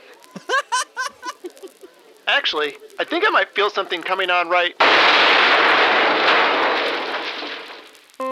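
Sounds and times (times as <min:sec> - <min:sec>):
laughter: 0:00.2 - 0:02.2
speech: 0:02.3 - 0:05.7
explosion: 0:04.8 - 0:08.2.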